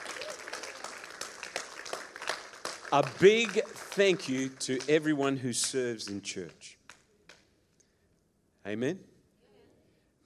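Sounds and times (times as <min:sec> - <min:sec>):
audience applause: 0:00.0 - 0:05.2
speech: 0:02.9 - 0:06.8, 0:08.7 - 0:09.1.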